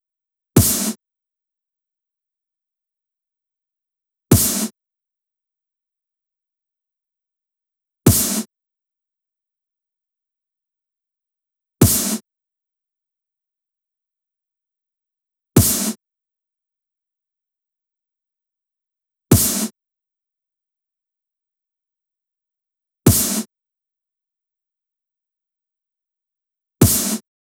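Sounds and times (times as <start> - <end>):
drum loop: 0.6 - 0.9, 15.6 - 15.9, 26.8 - 27.2
snare drum hits: 0.6 - 1.0, 4.3 - 4.7, 8.1 - 8.5, 11.8 - 12.2, 15.6 - 16.0, 19.3 - 19.7, 23.1 - 23.5, 26.8 - 27.2.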